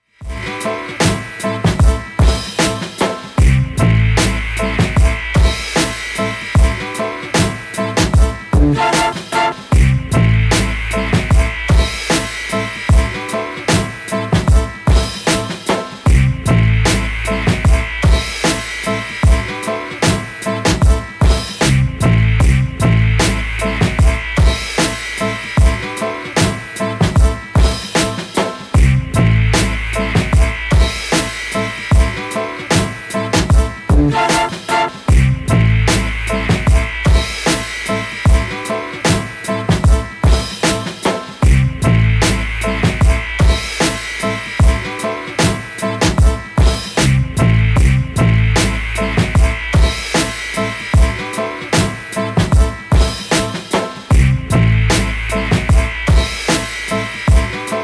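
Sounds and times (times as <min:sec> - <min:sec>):
instrumental music: 0:00.2 - 0:57.8.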